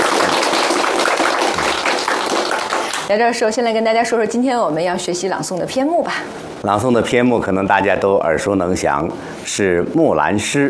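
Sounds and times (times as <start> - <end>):
audience applause welcoming a guest: 0.0 - 3.1
speech: 3.1 - 10.6.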